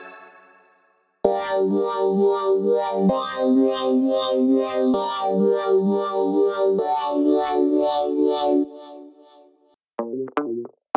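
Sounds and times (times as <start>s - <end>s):
funk music: 1.3s - 9.1s, 10.0s - 10.9s.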